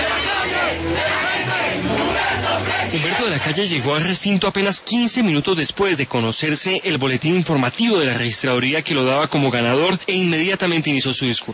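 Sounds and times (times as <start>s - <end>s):
crowd cheering and chanting for Humberto de la Calle: 0.0s - 4.2s
speech: 2.9s - 11.5s.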